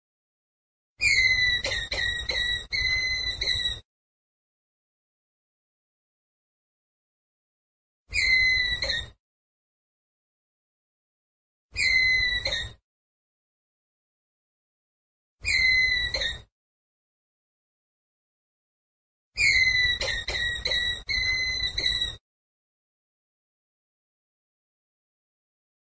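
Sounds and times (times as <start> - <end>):
ground squirrel whistled call: 1.0 - 3.8, 8.1 - 9.2, 11.8 - 12.8, 15.4 - 16.5, 19.4 - 22.2.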